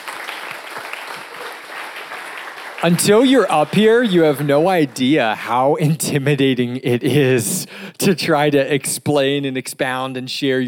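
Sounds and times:
audience applause: 0.0 - 5.2
speech: 2.8 - 10.6.

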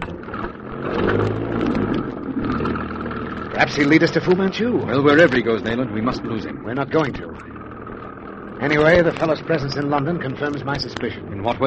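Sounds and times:
car engine revving and pulling away: 0.0 - 11.6
speech: 3.6 - 7.6, 8.6 - 11.6.

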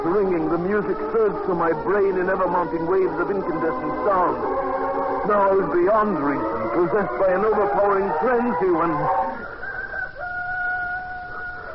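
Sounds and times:
speech: 0.6 - 9.2
rooster crowing: 6.2 - 11.7.

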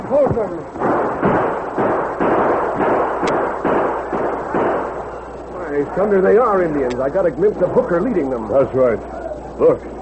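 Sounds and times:
speech: 0.1 - 1.3, 5.8 - 10.0
booming gunfire from a fort: 0.3 - 5.2.

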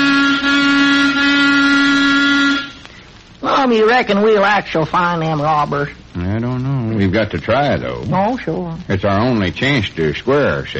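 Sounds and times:
car horn honking: 0.0 - 2.8
speech: 3.6 - 10.7.

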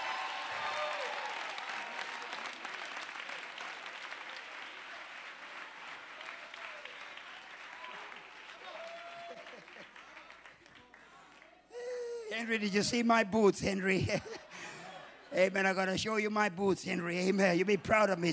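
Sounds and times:
audience clapping: 0.0 - 11.7
laughter: 9.3 - 10.3, 13.6 - 15.5
speech: 12.4 - 14.5, 15.4 - 18.3.

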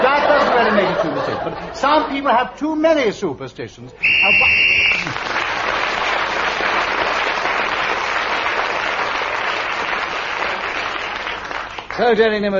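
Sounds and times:
laughter: 0.0 - 2.3
speech: 1.0 - 5.4, 12.0 - 12.5
shrill whistle blast ending a game round: 4.0 - 5.2
loud applause: 4.0 - 12.0.

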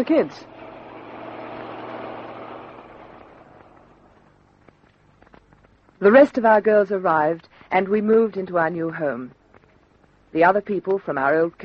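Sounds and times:
speech: 0.0 - 0.5, 6.0 - 9.4, 10.3 - 11.6
truck approaching with engine rumbling: 0.0 - 5.9.

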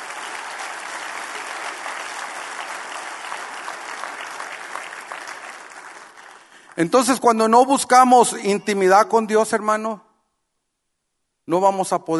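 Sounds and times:
crowd applauding: 0.0 - 7.3
speech: 6.8 - 10.0, 11.5 - 12.1.

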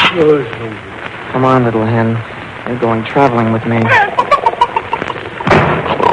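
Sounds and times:
speech: 0.1 - 4.1
door slamming: 5.5 - 6.0.

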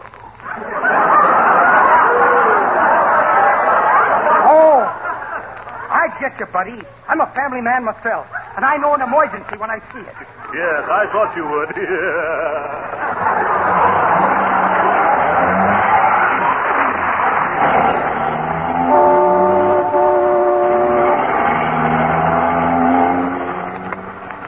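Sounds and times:
laughter: 0.4 - 7.0, 8.2 - 20.0
speech: 6.2 - 16.0
car speeding through town with engine roaring: 12.9 - 24.4
sustained car horn: 18.7 - 21.7.

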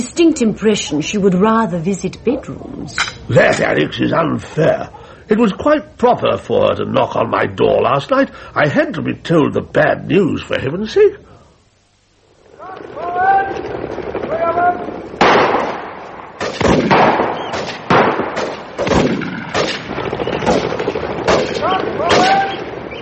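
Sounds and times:
speech: 0.0 - 11.2
people talking and calling: 0.0 - 15.2, 19.6 - 23.0
shotgun blasts at a pheasant shoot: 13.4 - 23.0.

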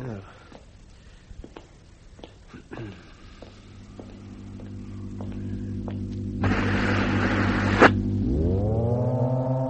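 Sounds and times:
elevator descending with droning electrical hum and whine: 2.8 - 9.1
hissing noise: 6.3 - 8.1.

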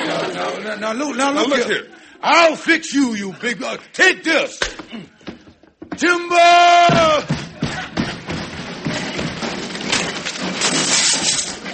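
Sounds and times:
laughter: 0.0 - 3.9, 7.2 - 9.2
speech: 0.5 - 5.2, 6.0 - 7.4
man thrown crashing down the stairs: 4.8 - 10.7.

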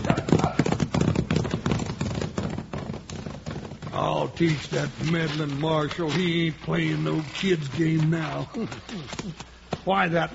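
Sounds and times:
horse hooves clip-clopping: 0.0 - 6.0
speech: 4.1 - 10.3.

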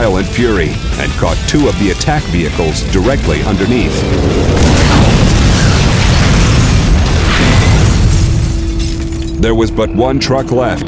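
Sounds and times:
speech: 0.1 - 5.2, 9.4 - 10.8
heavy tank shell explosion: 2.7 - 8.9.

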